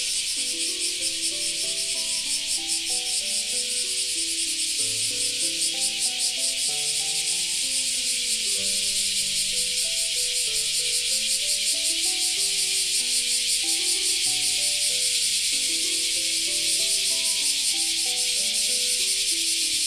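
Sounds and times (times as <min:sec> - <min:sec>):
cicadas chorus: 0:00.0 - 0:19.8.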